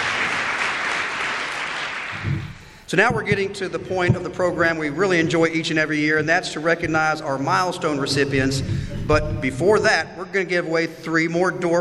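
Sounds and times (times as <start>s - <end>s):
audience applause at an afternoon recognition event: 0.0s - 2.7s
speech: 2.9s - 11.7s.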